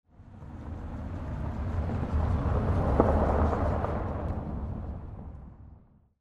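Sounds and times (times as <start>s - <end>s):
car driving by: 0.1s - 6.0s.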